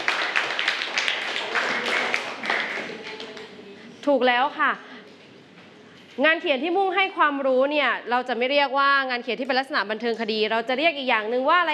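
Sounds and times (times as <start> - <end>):
applause: 0.0 - 3.5
speech: 4.1 - 4.9, 6.2 - 11.7.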